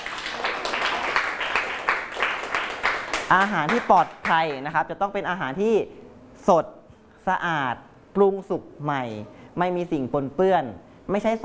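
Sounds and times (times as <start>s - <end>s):
applause: 0.0s - 4.6s
speech: 3.3s - 11.4s.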